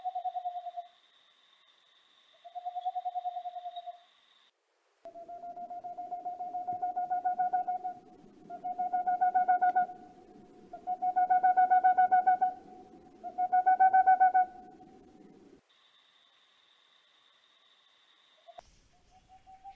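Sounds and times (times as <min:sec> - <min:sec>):
boreal owl song of soft hollow hoots: 0:00.0 - 0:01.0, 0:02.3 - 0:04.1, 0:05.1 - 0:15.0, 0:18.4 - 0:19.7.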